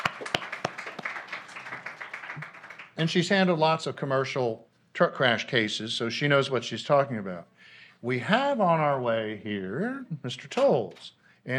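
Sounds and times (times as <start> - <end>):
audience applause at a Texas Trial Lawyers Association event: 0.0 - 3.2
speech: 3.0 - 11.5.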